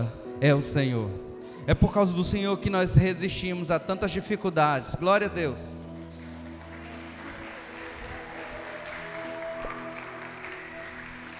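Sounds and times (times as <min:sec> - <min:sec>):
speech: 0:00.0 - 0:05.9
audience applause: 0:05.9 - 0:11.3.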